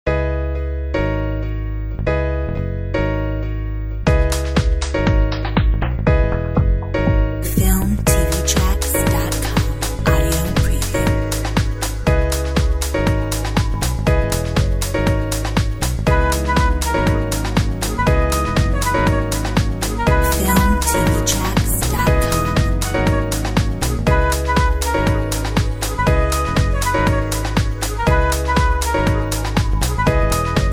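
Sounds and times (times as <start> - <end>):
downtown jazz: 0.1 - 30.7.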